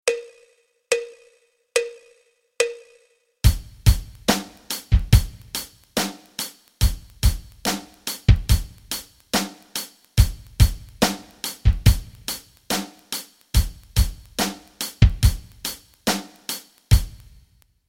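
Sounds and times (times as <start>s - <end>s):
rock rhythms: 3.4s - 17.5s.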